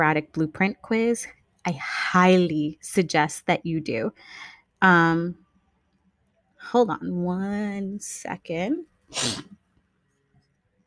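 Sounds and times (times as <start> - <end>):
speech: 0.0 - 5.4, 6.6 - 9.6
person blowing nose: 9.1 - 9.6.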